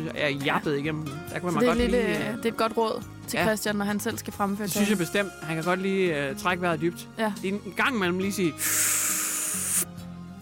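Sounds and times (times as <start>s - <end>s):
speech: 0.0s - 9.1s
asthma inhaler spray puff: 8.6s - 9.9s.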